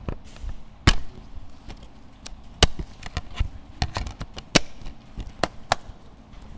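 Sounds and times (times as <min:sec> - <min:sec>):
VHS cassette opening and closing: 0:00.9 - 0:06.0.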